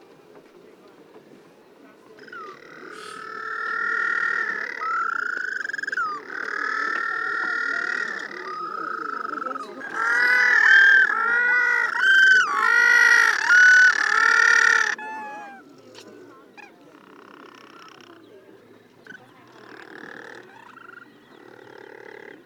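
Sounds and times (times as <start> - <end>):
white-flippered penguin braying: 2.2 - 15.7.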